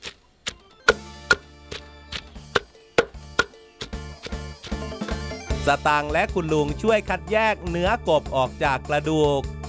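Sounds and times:
pounding herbs in a mortar: 0:00.5 - 0:05.2
speech: 0:05.6 - 0:09.5.

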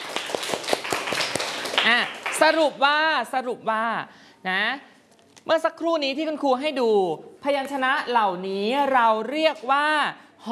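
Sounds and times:
class clapping for a student: 0:00.0 - 0:02.8
speech: 0:01.8 - 0:10.5.

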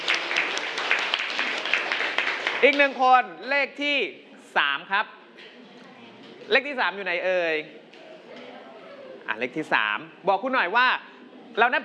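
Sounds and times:
classmates clapping for a student's answer in a classroom: 0:00.0 - 0:03.0
speech: 0:02.6 - 0:05.2, 0:06.5 - 0:07.8, 0:09.3 - 0:11.8.

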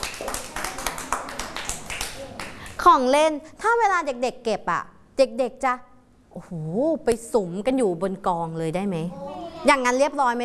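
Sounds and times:
rhythmic hand clapping for a child: 0:00.0 - 0:02.7
speech: 0:02.8 - 0:10.4.

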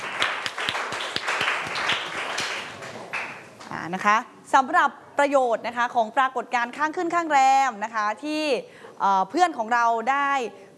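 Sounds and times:
classroom applause for a student: 0:00.0 - 0:03.6
speech: 0:03.9 - 0:10.7.

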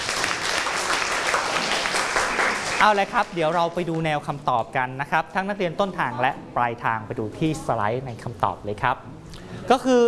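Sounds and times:
classmates clapping in a school classroom: 0:00.0 - 0:03.8
speech: 0:02.8 - 0:10.0.

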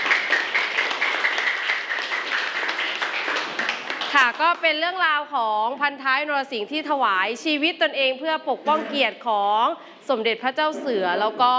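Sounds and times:
classroom applause: 0:00.0 - 0:04.5
speech: 0:04.2 - 0:11.5.

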